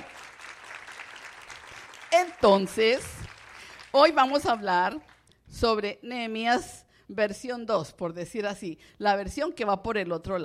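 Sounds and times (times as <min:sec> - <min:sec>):
audience applause: 0:00.0 - 0:04.2
speech: 0:02.2 - 0:03.2, 0:03.9 - 0:10.4.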